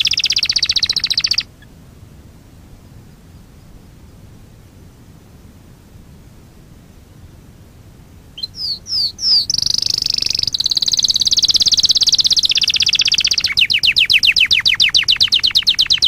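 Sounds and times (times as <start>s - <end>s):
Fife canary singing: 0.0s - 1.7s, 8.4s - 16.0s.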